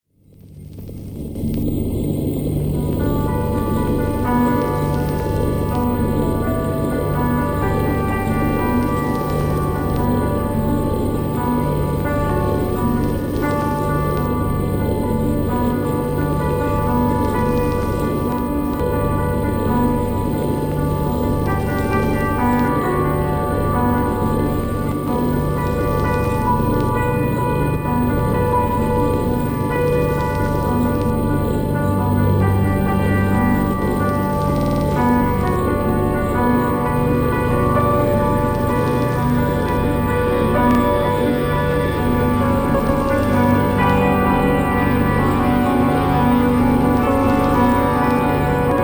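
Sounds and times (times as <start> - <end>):
piano: 0.0 - 48.8.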